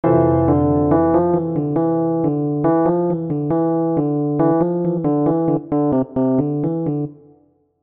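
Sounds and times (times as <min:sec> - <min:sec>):
melody: 0:00.0 - 0:07.2.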